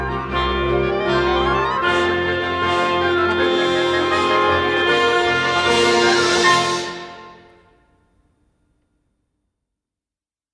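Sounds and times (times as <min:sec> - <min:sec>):
instrumental melody: 0:00.0 - 0:08.0.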